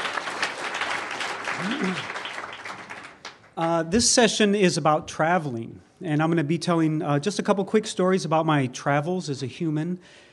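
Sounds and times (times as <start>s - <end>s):
audience applause: 0.0s - 3.5s
speech: 1.6s - 2.2s, 3.6s - 10.3s.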